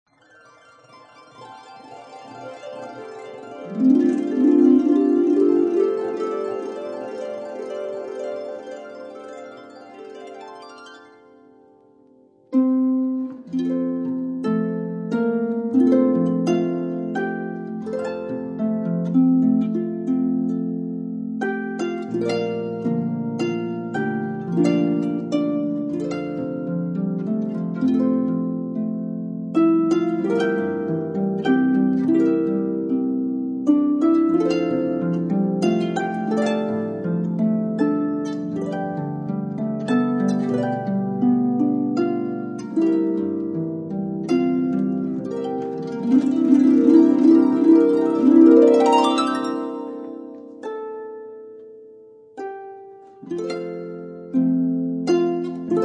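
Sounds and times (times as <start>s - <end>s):
harp playing hymns: 0.2s - 55.8s.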